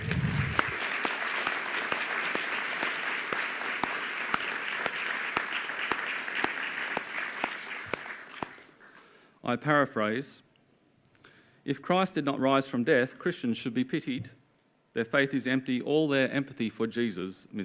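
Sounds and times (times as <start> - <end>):
audience applause at a UTS event welcoming the speakers: 0.0 - 8.8
speech: 9.5 - 10.5, 11.7 - 17.6.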